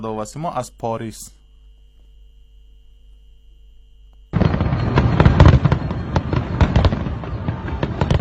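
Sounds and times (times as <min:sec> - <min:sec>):
speech: 0:00.0 - 0:01.4
fireworks on New Year's Eve: 0:04.3 - 0:08.2.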